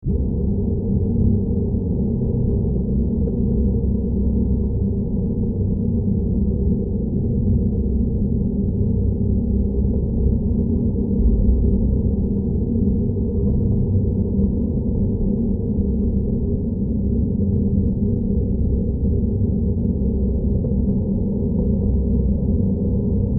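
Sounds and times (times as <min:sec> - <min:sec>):
ambient tonal bass drones and tones: 0:00.0 - 0:23.3.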